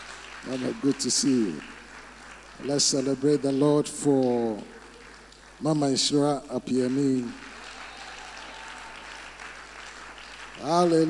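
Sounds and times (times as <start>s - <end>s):
audience clapping: 0.0s - 11.0s
speech: 0.4s - 1.8s, 2.6s - 4.8s, 5.6s - 7.5s, 10.6s - 11.0s.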